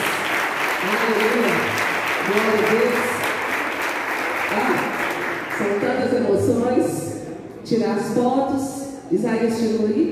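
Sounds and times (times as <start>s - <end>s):
audience applauding: 0.0s - 6.0s
speech: 0.8s - 3.2s, 5.7s - 10.1s.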